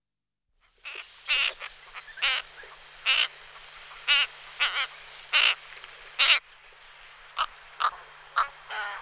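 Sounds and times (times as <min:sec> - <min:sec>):
cattle egret giving harsh croaking calls: 0:00.8 - 0:06.4, 0:07.4 - 0:08.9.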